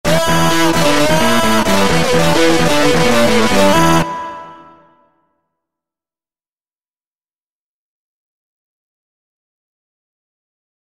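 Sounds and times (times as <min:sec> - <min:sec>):
guitar: 0:00.0 - 0:05.0.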